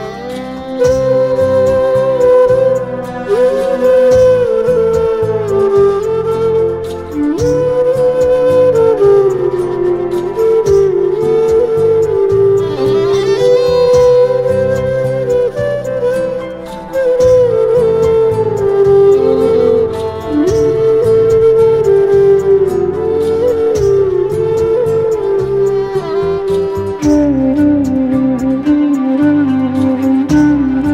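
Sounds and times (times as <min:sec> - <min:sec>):
flute: 0:00.0 - 0:30.9
violin: 0:00.0 - 0:30.9.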